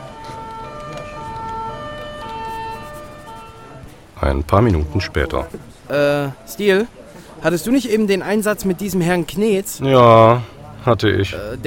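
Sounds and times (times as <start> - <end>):
police patrol car siren: 0.0 - 3.9
speech: 4.2 - 11.6.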